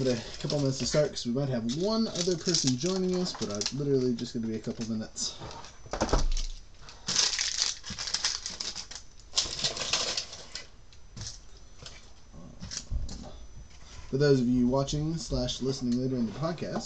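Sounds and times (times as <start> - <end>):
speech: 0.0 - 6.2, 14.1 - 16.8
plastic and paper trash being crumpled and tossed: 1.7 - 4.9, 6.0 - 10.7.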